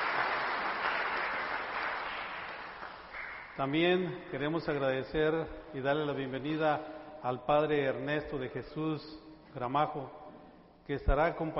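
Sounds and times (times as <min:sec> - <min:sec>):
audience applause: 0:00.0 - 0:03.6
speech: 0:03.6 - 0:10.2, 0:10.9 - 0:11.5.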